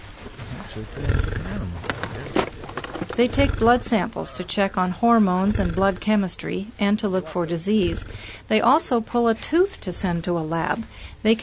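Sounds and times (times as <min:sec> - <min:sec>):
sedated wild animal snoring: 0:00.5 - 0:02.4, 0:03.2 - 0:06.5, 0:07.2 - 0:08.5, 0:09.7 - 0:10.3
speech: 0:00.8 - 0:02.6, 0:03.2 - 0:11.4.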